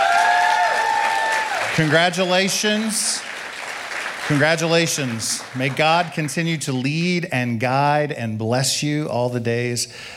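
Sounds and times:
audience applause: 0.0s - 6.4s
speech: 1.8s - 3.3s, 4.3s - 10.1s.

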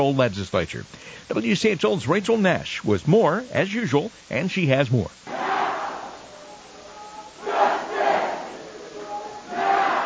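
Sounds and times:
speech: 0.0s - 5.4s
hundreds of protesters chanting and singing inside the North Carolina General Assembly: 5.3s - 10.0s.

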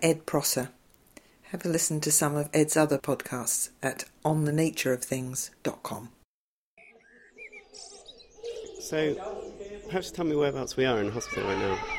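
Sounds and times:
speech: 0.0s - 0.8s, 1.5s - 6.2s, 8.9s - 11.9s
blackbird singing through a birdsong installation at Alder Hey Children's Hospital: 6.8s - 11.9s.

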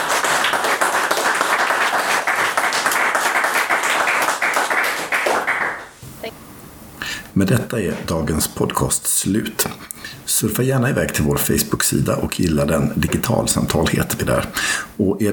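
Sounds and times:
audience applause: 0.0s - 5.9s
speech: 7.4s - 15.3s.

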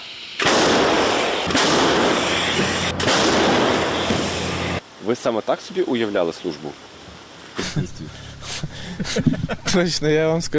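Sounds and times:
M109 self-propelled howitzer firing: 0.4s - 4.8s
sharp cracks: 0.4s - 4.8s
speech: 5.0s - 6.9s, 7.6s - 8.2s, 9.0s - 10.5s
laughter: 7.6s - 9.9s.

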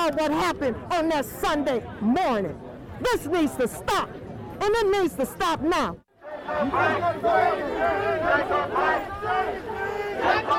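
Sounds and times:
speech: 0.1s - 10.5s
crowd chanting at a protest march: 6.2s - 10.5s.

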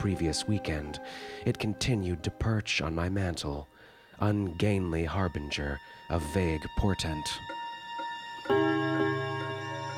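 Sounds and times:
speech: 0.0s - 7.6s
railroad clock ticking: 6.8s - 9.6s.

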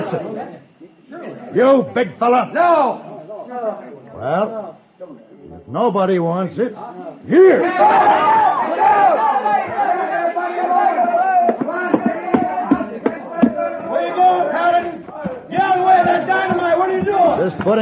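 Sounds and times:
speech: 0.1s - 10.8s, 15.5s - 17.8s
crowd running away: 7.8s - 17.8s.

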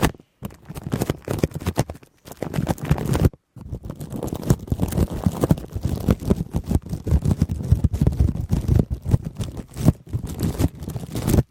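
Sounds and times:
intense crinkles: 0.0s - 11.4s
shaving cream rubbed on the mic: 4.0s - 11.4s.

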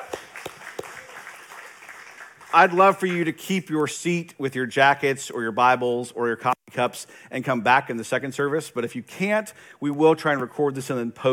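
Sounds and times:
audience round of applause: 0.0s - 2.8s
speech: 2.5s - 11.3s.

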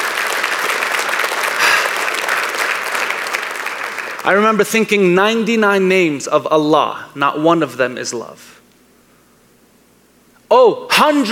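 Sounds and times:
audience applause: 0.0s - 4.4s
speech: 4.2s - 8.6s, 10.5s - 11.3s.

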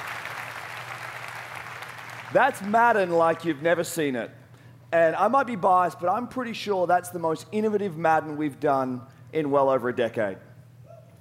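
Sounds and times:
audience applause: 0.0s - 2.7s
speech: 2.3s - 10.5s.

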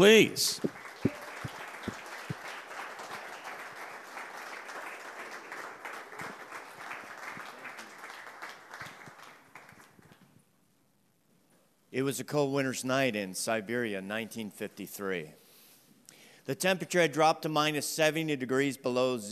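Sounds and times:
speech: 0.0s - 0.8s, 12.0s - 15.4s, 16.5s - 19.3s
standing church congregation applauding a missionary pastor: 0.0s - 10.2s.

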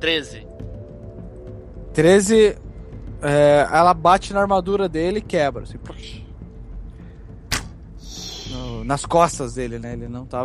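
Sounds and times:
speech: 0.0s - 0.6s, 2.0s - 2.6s, 3.2s - 6.2s, 8.9s - 10.4s
crossbow shot: 7.5s - 8.3s.

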